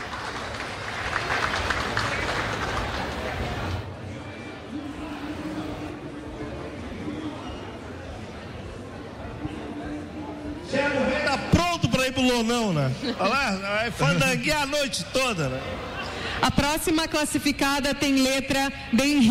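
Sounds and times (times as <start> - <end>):
audience applause: 0.0 - 3.8
crowd murmur and talking: 0.0 - 19.3
speech: 12.2 - 19.3.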